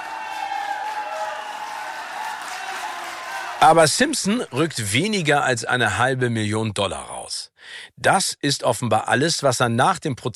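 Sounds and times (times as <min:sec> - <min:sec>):
crowd cheering and applauding in courtroom: 0:00.0 - 0:04.7
speech: 0:03.6 - 0:10.3.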